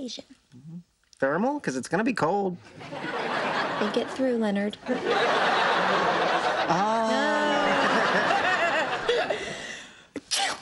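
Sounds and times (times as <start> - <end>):
speech: 0.0 - 3.2, 3.8 - 7.0
laughter: 2.7 - 9.7
sneeze: 10.2 - 10.6.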